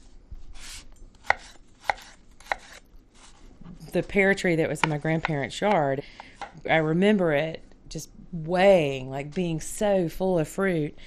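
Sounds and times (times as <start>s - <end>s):
knife dicing food for relish: 0.6s - 3.3s
speech: 3.9s - 11.0s.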